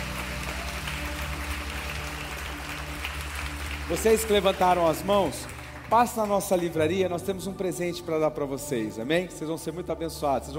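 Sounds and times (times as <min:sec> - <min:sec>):
audience applause: 0:00.0 - 0:06.9
speech: 0:03.9 - 0:10.5.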